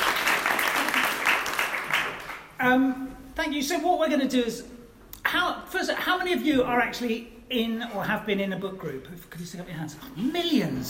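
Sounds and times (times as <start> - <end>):
audience applause welcoming a speaker at a book group evening: 0.0 - 2.5
speech: 2.6 - 10.8.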